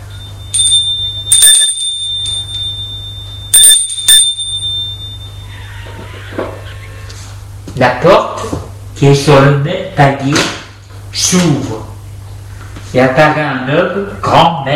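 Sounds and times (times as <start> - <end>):
apartment doorbell ringing: 0.0 - 6.7
low steady hum: 0.0 - 14.7
speech: 7.8 - 8.3, 9.0 - 10.6, 11.2 - 11.9, 12.9 - 14.7.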